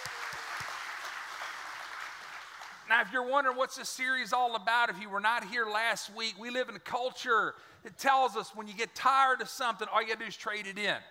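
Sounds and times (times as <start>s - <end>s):
audience hand clapping: 0.0s - 2.9s
speech: 2.9s - 11.0s.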